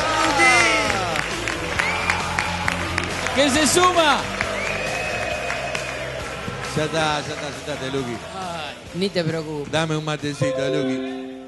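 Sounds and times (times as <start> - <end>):
crowd applause and cheering: 0.0 - 8.2
speech: 3.4 - 4.4, 6.8 - 11.2.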